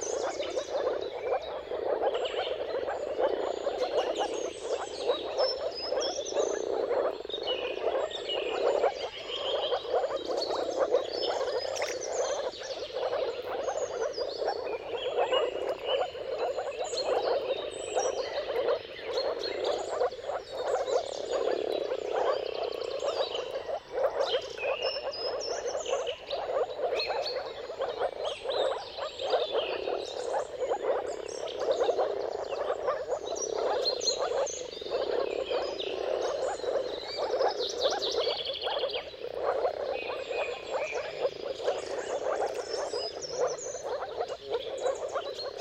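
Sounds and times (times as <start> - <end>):
birds whistling: 0.0 - 45.5
moor frogs bubbling chorus: 0.0 - 45.5.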